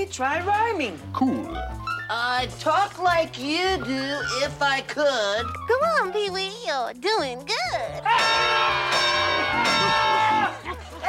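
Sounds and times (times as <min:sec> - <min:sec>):
speech: 0:00.0 - 0:10.1
crowd screaming: 0:08.0 - 0:10.7.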